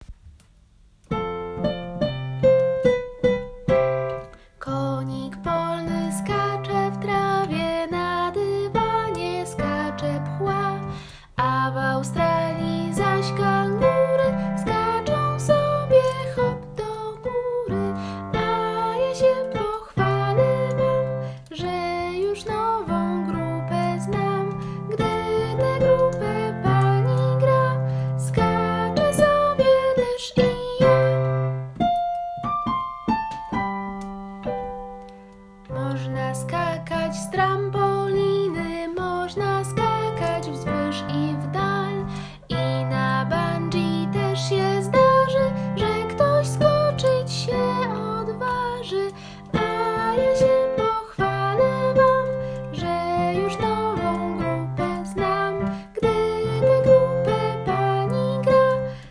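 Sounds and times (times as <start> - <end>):
bouncy song: 1.1 - 59.0.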